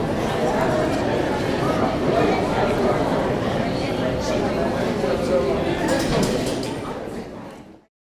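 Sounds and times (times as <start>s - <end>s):
national gallery museum internal ambience in portico: 0.0s - 7.8s.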